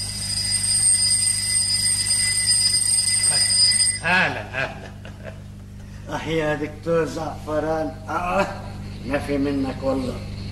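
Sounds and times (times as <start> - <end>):
alarm clock ringing: 0.0 - 4.5
laughter: 4.0 - 5.6
speech: 6.3 - 10.3.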